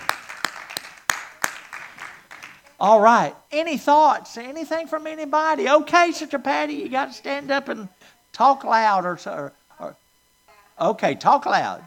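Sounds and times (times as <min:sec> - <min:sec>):
audience hand clapping: 0:00.0 - 0:02.7
speech: 0:02.8 - 0:10.0, 0:10.8 - 0:11.8.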